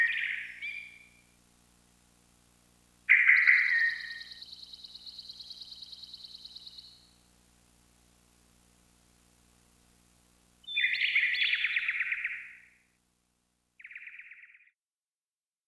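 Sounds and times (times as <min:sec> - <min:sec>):
birds chirping: 0:00.0 - 0:01.1, 0:03.1 - 0:07.0, 0:10.6 - 0:12.6.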